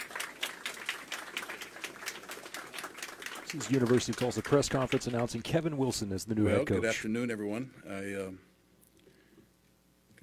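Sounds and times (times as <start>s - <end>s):
audience applause at a University of Tulsa press conference: 0.0s - 5.6s
speech: 3.5s - 8.5s.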